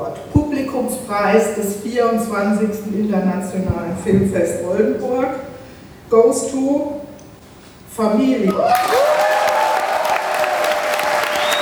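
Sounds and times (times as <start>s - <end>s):
speech: 1.1s - 5.5s, 6.1s - 7.0s, 8.0s - 9.2s
applause in the large hall of the Staatstheater in Oldenburg: 8.5s - 11.6s.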